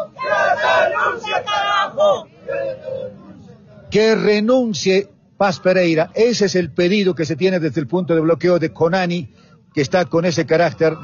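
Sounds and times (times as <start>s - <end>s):
protest crowd chanting a slogan in unison: 0.0s - 3.5s
speech: 3.9s - 11.0s.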